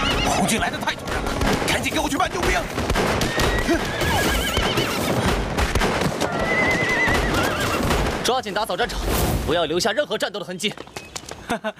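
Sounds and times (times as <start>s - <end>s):
horses neighing in a Red Army battle scene near Liping county: 0.0s - 1.3s, 3.2s - 8.0s
clopping hooves: 0.0s - 8.3s, 10.1s - 11.7s
speech: 0.4s - 5.4s, 8.2s - 10.9s, 11.5s - 11.7s.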